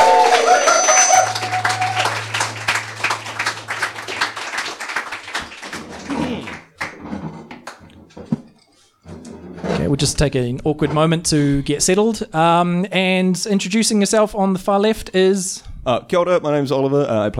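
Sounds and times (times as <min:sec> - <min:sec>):
audience applause: 0:00.0 - 0:07.0
speech: 0:10.0 - 0:17.3.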